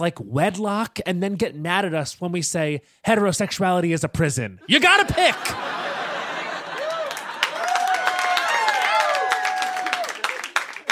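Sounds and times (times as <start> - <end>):
speech: 0.0 - 5.8
laughter: 4.6 - 8.3
audience applause and clapping: 6.2 - 10.8.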